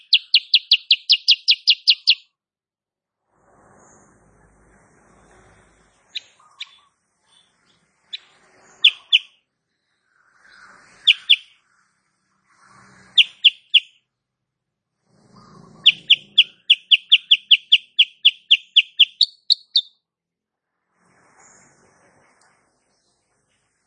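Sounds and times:
sooty-headed bulbul singing: 0:00.0 - 0:02.3, 0:06.0 - 0:09.4, 0:10.1 - 0:12.0, 0:13.2 - 0:14.1, 0:15.4 - 0:20.0.

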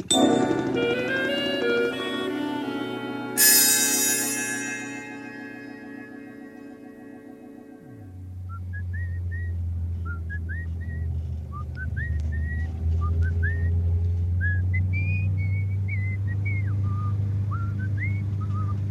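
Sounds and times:
whistle playing a lively tune: 0:00.1 - 0:07.6
steady low engine-like rumble: 0:07.8 - 0:18.9.

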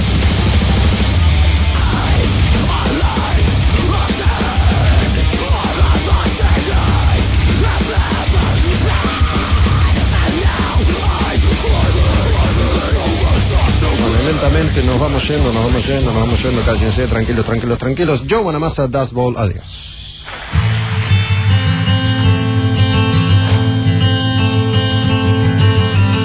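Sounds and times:
loud dense melodic metal song with heavily distorted guitars: 0:00.0 - 0:17.9, 0:20.3 - 0:26.2
harsh screamed vocals mixed with some singing: 0:01.7 - 0:17.0
speech: 0:15.0 - 0:20.0.

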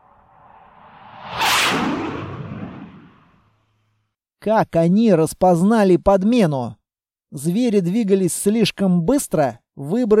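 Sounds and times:
whistling whoosh of returning ship: 0:00.0 - 0:03.4
speech: 0:04.4 - 0:10.1.

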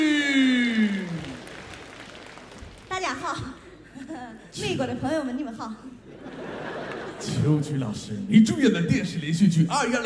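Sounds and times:
audience applause: 0:00.7 - 0:03.2
speech: 0:04.6 - 0:05.9, 0:07.2 - 0:10.0
laughter: 0:06.1 - 0:07.6.

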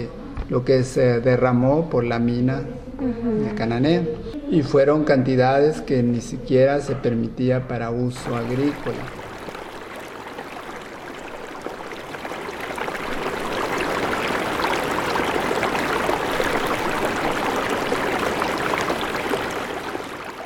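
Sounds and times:
speech: 0:00.0 - 0:09.2
river water flowing: 0:08.2 - 0:20.4.

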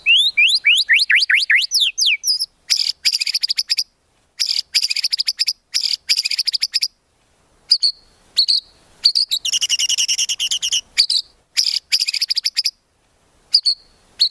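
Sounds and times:
white-rumped shama swooping whistles, chips and clicks: 0:00.0 - 0:02.4, 0:08.4 - 0:12.7.

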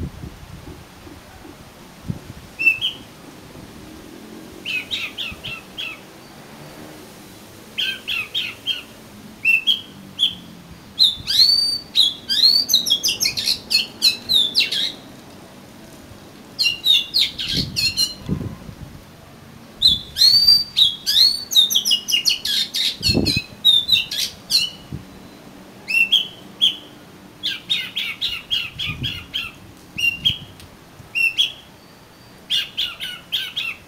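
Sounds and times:
Oriental magpie-robin singing: 0:02.6 - 0:03.1, 0:04.6 - 0:06.4, 0:07.3 - 0:15.1, 0:16.5 - 0:18.2, 0:19.8 - 0:33.8.

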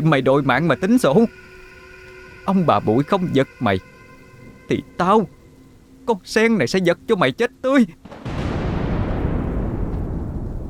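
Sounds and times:
speech: 0:00.0 - 0:01.5, 0:02.4 - 0:03.9, 0:04.7 - 0:05.4, 0:06.1 - 0:08.3
loud thunderclap from a lightning strike: 0:08.0 - 0:10.6.

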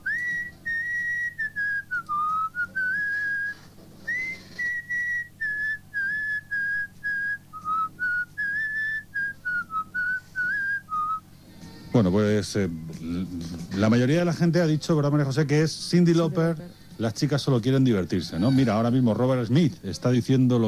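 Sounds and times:
person whistling a pop song melody: 0:00.0 - 0:11.2
speech: 0:11.9 - 0:20.6.

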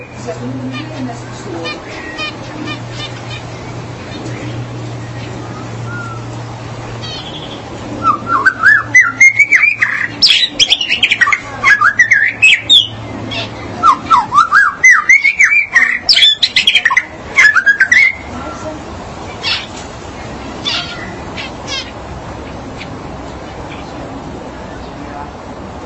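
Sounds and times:
magpie-robin or shama whistled song: 0:05.0 - 0:06.4, 0:07.0 - 0:18.6.

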